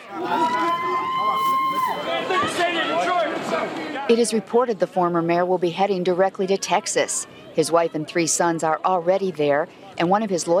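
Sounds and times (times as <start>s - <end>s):
crowd of supporters cheering and shouting: 0.0s - 3.8s
sustained high whistle-like cry: 0.4s - 2.2s
speech: 1.9s - 10.5s.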